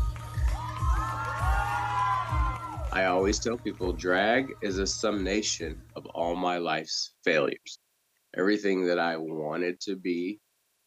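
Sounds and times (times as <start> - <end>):
music with thumping regular bass beat: 0.0 - 6.0
audience cheering wildly at a drag performance: 0.4 - 3.0
speech: 2.9 - 7.8, 8.4 - 10.4.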